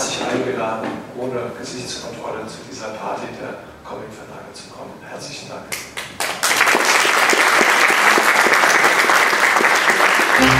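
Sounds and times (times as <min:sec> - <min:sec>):
speech: 0:00.4 - 0:06.6
audience applause: 0:06.2 - 0:10.5.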